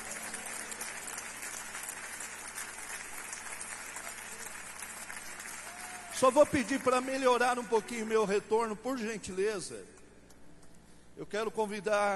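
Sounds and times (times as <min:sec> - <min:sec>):
audience applauding: 0:00.0 - 0:08.1
speech: 0:06.2 - 0:10.0, 0:11.2 - 0:12.1.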